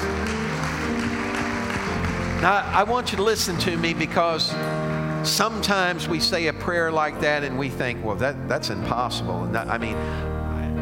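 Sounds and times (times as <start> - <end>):
audience hand clapping in praise: 0.0 - 5.5
speech: 2.4 - 10.3.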